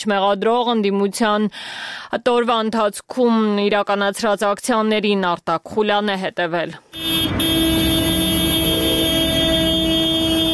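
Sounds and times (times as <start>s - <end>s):
speech: 0.0s - 7.4s
car horns blaring at a motorcade protest in Yerevan: 7.0s - 10.5s
dense vehicle rumble of a motorcade in Yerevan: 7.0s - 10.5s.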